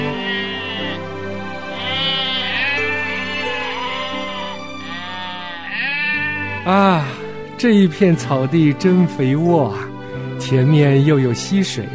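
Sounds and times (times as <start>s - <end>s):
sheep bleating: 0.0s - 6.7s
speech: 6.6s - 9.9s, 10.5s - 11.9s.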